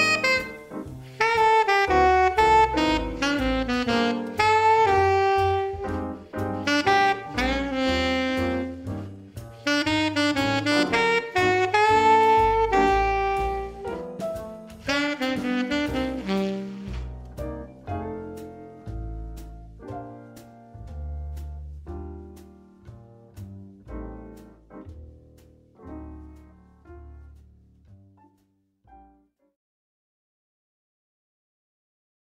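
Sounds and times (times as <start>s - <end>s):
alto saxophone: 0.0s - 17.4s.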